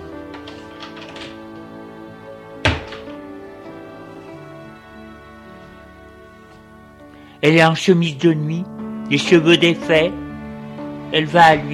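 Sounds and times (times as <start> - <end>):
door opening: 0.1 - 4.7
speech: 7.4 - 10.2, 11.1 - 11.7.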